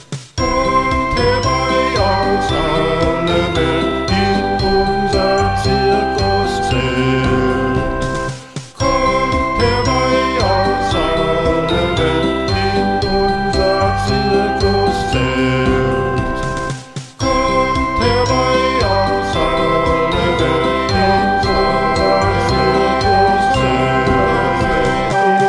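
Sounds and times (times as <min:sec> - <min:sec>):
voices singing a circus song round: 0:00.4 - 0:16.4, 0:17.2 - 0:25.4.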